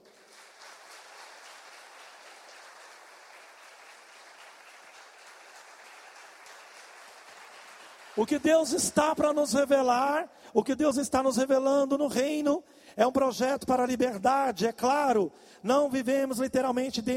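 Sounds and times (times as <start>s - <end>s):
audience applauding: 0.0s - 9.6s
speech: 8.2s - 17.1s.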